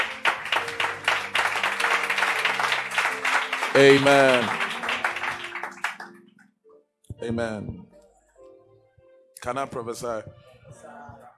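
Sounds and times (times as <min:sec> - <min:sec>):
audience clapping hands: 0:00.0 - 0:06.3
speech: 0:03.8 - 0:04.6, 0:07.2 - 0:07.9, 0:09.4 - 0:10.4.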